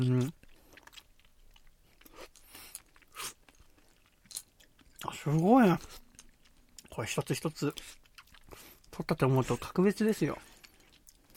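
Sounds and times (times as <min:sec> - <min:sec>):
speech: 0:00.0 - 0:00.4, 0:05.2 - 0:06.0, 0:07.0 - 0:08.0, 0:09.0 - 0:10.5
chewing sake-steamed clams: 0:00.0 - 0:09.8, 0:10.4 - 0:11.3.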